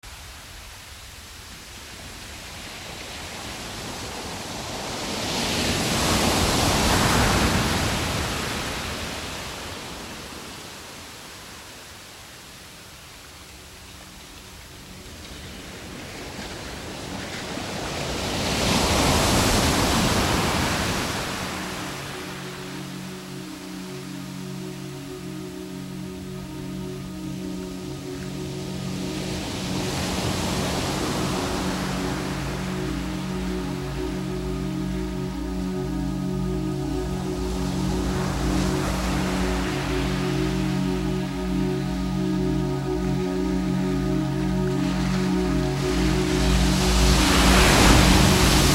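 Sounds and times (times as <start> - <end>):
beach nature ambience: 0.0 - 48.7.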